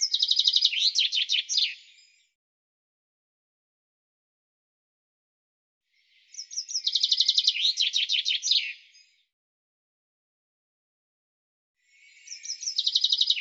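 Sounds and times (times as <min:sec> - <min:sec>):
bird song: 0:00.0 - 0:02.4, 0:05.9 - 0:09.3, 0:11.8 - 0:13.4.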